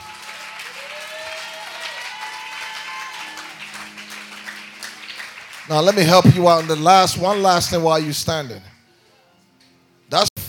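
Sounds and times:
audience clapping: 0.0s - 8.8s
speech: 5.7s - 8.7s, 10.1s - 10.3s.

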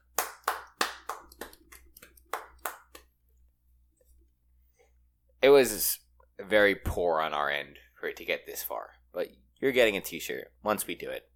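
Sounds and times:
small group clapping: 0.0s - 3.1s
speech: 5.4s - 11.3s.

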